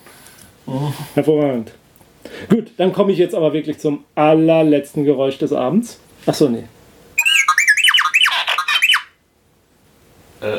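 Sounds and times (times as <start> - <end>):
speech: 0.7 - 1.8, 2.4 - 6.8
science-fiction robot droid beeping and whistling: 7.2 - 9.1.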